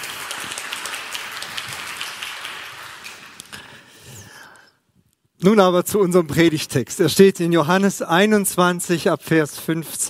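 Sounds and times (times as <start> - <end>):
audience clapping: 0.0 - 4.0
speech: 5.4 - 10.0.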